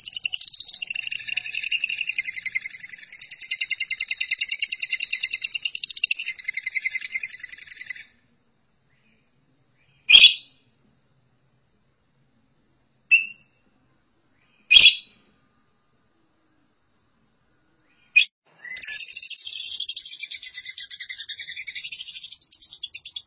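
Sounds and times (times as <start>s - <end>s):
lovebird chattering: 0.0s - 8.1s, 18.2s - 23.2s.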